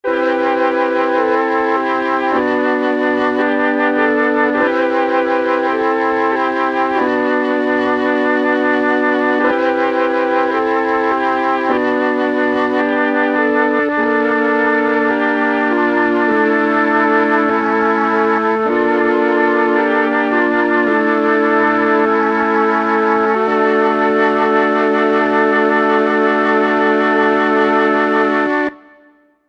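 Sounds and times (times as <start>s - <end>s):
flute: 0.0s - 29.4s.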